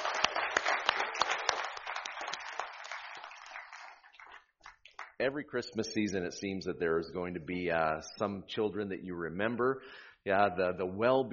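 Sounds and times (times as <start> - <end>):
audience clapping: 0.0 - 5.6
speech: 5.2 - 11.3.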